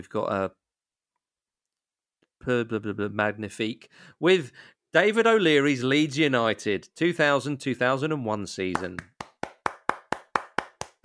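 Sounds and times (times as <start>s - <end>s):
speech: 0.0s - 0.6s, 2.4s - 9.1s
audience applause: 9.3s - 11.0s.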